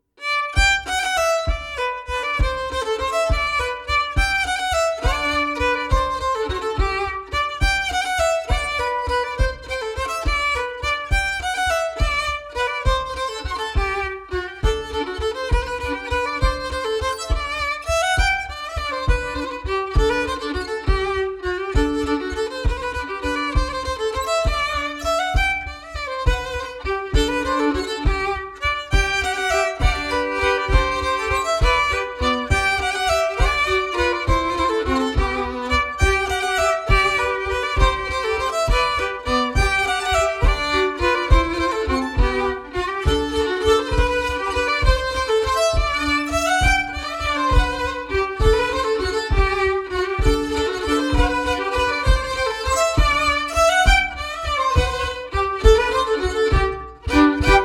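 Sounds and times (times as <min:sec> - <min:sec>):
bourree dance tune: 0:00.2 - 0:57.6.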